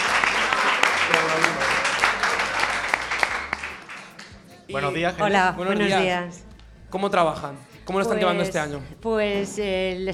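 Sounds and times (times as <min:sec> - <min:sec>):
audience applause: 0:00.0 - 0:04.4
speech: 0:01.1 - 0:01.5, 0:04.7 - 0:10.1.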